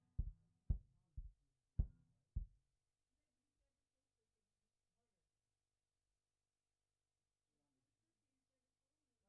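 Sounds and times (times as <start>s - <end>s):
kick drum: 0.0s - 2.6s.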